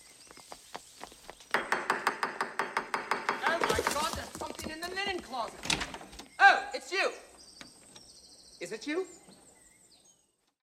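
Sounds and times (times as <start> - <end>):
knocking upstairs: 1.5 - 4.8
speech: 4.6 - 7.3, 8.6 - 9.2.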